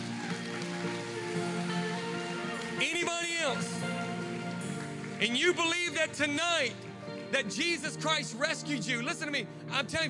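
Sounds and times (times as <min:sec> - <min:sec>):
audience applause: 0:00.0 - 0:07.1
speech: 0:03.4 - 0:03.9, 0:05.2 - 0:10.0.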